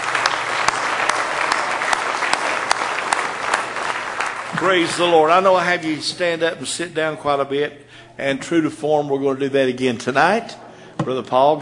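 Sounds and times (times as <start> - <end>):
audience clapping in praise: 0.0 - 5.7
speech: 4.6 - 11.6.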